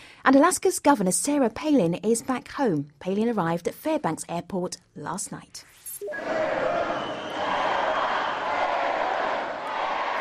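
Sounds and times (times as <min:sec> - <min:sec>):
speech: 0:00.2 - 0:06.8
crowd of 2,000 people cheering loudly: 0:06.0 - 0:10.1.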